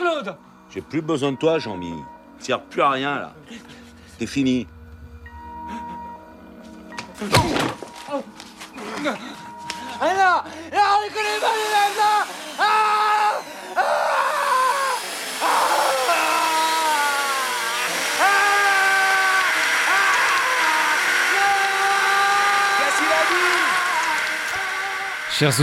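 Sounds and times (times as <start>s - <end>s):
speech: 0.2s - 4.8s, 7.2s - 8.4s, 9.0s - 9.4s, 10.0s - 12.9s, 25.4s - 25.6s
voice imitating a power drill whirring: 10.0s - 25.6s.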